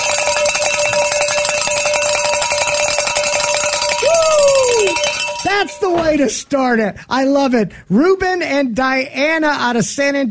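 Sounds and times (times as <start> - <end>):
hand bells ringing: 0.0 - 6.3
speech: 5.7 - 10.2.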